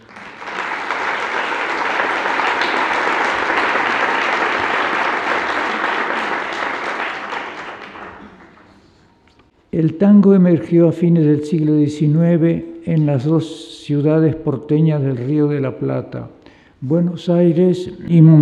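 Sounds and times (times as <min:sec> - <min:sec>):
audience applause: 0:00.0 - 0:08.9
speech: 0:09.8 - 0:18.3.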